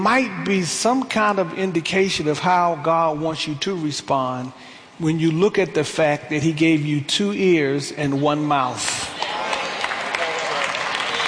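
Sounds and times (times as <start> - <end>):
speech: 0.0 - 9.2
congregation applauding during a church sermon: 8.8 - 11.2.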